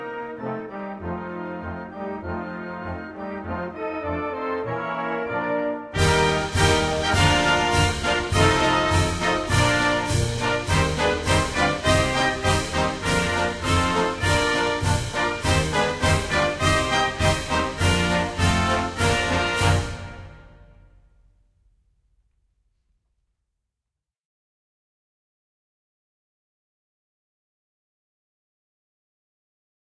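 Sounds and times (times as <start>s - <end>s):
national anthem: 0.0s - 20.8s.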